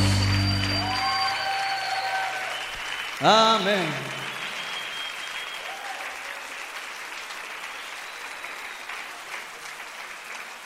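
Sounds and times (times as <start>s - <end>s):
audience applause: 0.0s - 10.6s
speech: 3.2s - 4.1s.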